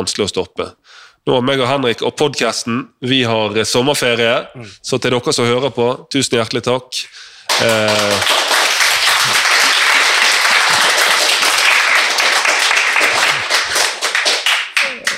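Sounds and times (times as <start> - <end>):
speech: 0.0 - 8.5
audience applause: 7.5 - 15.1.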